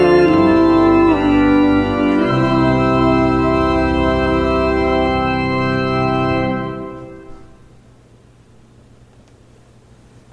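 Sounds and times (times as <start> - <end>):
descant recorder: 0.0 - 7.5.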